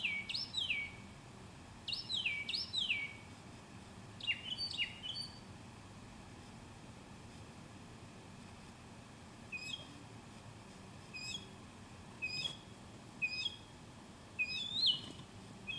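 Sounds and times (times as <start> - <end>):
birdsong: 0.0 - 1.1, 1.8 - 3.4, 4.2 - 5.5, 9.5 - 10.0, 11.1 - 11.6, 12.2 - 15.7.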